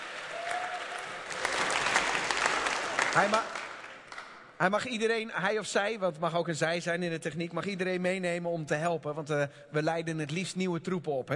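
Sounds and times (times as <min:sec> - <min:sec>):
audience applause: 0:00.0 - 0:04.5
speech: 0:03.2 - 0:03.6, 0:04.6 - 0:11.3.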